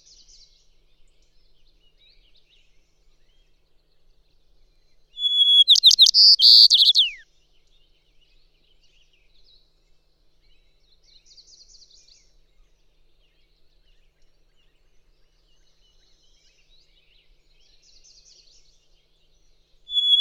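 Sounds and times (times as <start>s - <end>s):
White-crowned Sparrow calling: 5.2s - 7.2s, 19.9s - 20.1s.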